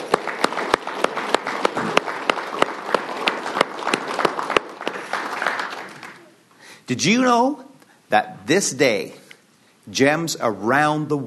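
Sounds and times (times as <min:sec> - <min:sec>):
round of applause: 0:00.0 - 0:06.4
speech: 0:06.9 - 0:09.2, 0:09.9 - 0:11.2.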